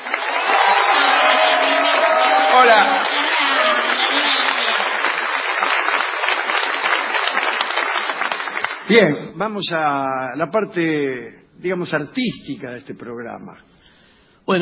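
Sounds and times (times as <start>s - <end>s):
audience ovation applause: 0.0s - 8.9s
speech: 8.9s - 13.8s.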